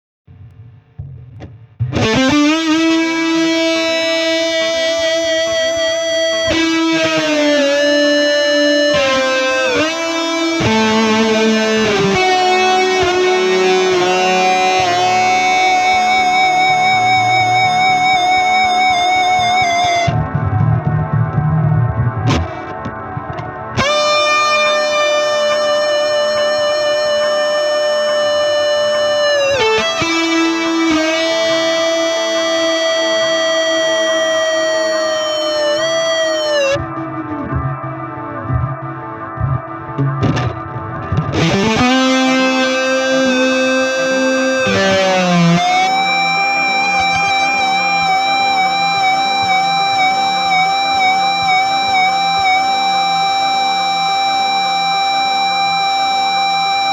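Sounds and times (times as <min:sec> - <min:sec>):
audio feedback: 0:01.0 - 0:56.9.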